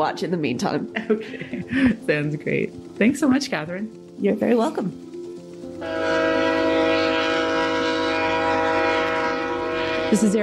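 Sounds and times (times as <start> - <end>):
speech: 0.0 - 5.1, 5.8 - 6.2, 10.1 - 10.4
passenger train rumbling past: 0.0 - 10.4
laughter: 0.9 - 2.0
passenger train horn blaring: 5.7 - 10.4.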